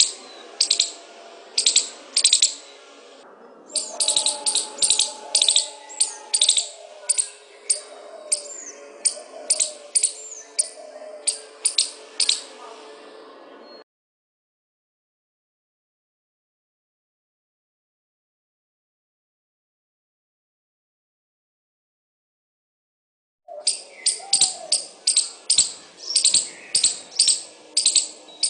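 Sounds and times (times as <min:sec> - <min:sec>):
squirrel chattering with crisp clicking bursts: 0:00.0 - 0:01.0, 0:01.6 - 0:02.7, 0:03.7 - 0:12.5, 0:23.6 - 0:28.4.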